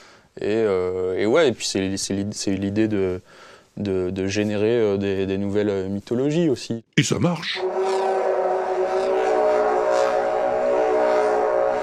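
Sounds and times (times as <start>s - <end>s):
speech: 0.4s - 7.8s
loudspeaker whirled on a string buzzing: 7.6s - 11.8s.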